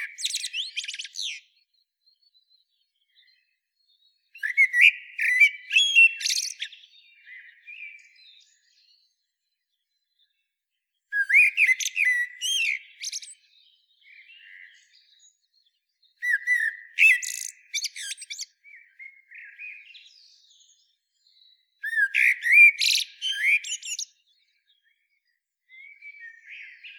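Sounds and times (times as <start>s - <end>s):
Eurasian blackbird singing: 0.0s - 10.5s, 11.1s - 26.9s.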